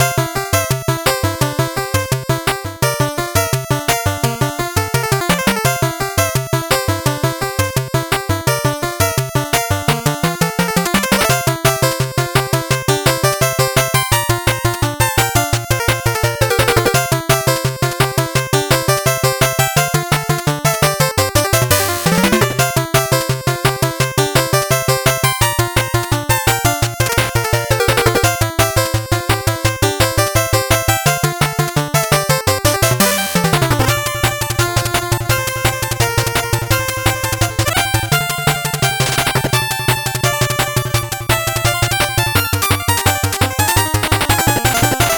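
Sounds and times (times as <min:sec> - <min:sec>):
8-bit background music: 0:00.0 - 0:45.1.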